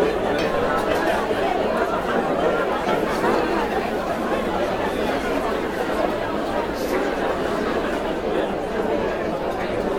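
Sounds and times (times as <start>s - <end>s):
cocktail party crowd chatter: 0.0s - 9.9s.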